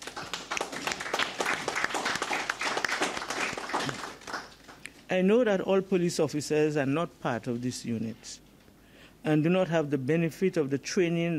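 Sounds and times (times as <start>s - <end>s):
audience applause: 0.0s - 4.8s
speech: 5.1s - 8.4s, 9.2s - 11.3s.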